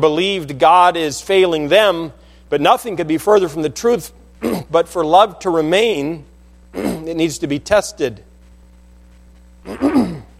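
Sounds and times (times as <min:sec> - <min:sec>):
speech: 0:00.0 - 0:08.3, 0:09.6 - 0:10.2
throat clearing: 0:04.4 - 0:04.7, 0:06.7 - 0:07.1, 0:09.6 - 0:10.3.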